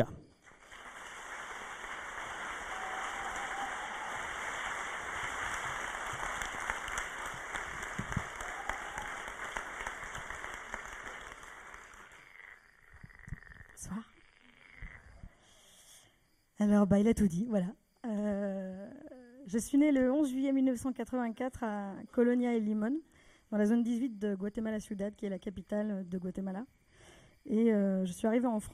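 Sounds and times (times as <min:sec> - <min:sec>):
audience applause: 0:00.5 - 0:12.6
speech: 0:16.6 - 0:17.8, 0:19.5 - 0:26.8, 0:27.4 - 0:28.7.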